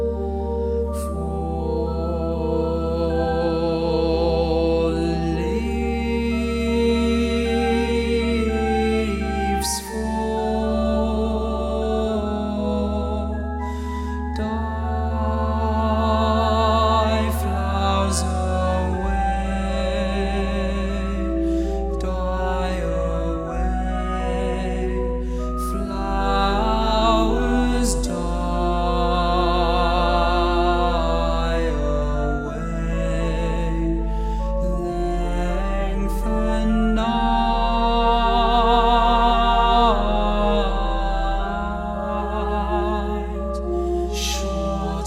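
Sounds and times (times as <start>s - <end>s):
tenor singing: 0.2s - 45.0s.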